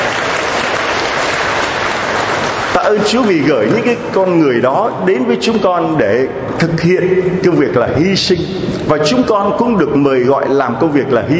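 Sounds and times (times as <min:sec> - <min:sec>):
children applauding at a church gathering: 0:00.0 - 0:03.5
speech: 0:02.8 - 0:11.3.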